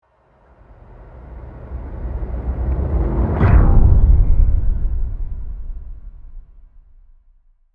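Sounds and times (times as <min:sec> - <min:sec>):
whoosh into hit: 0:01.7 - 0:07.2.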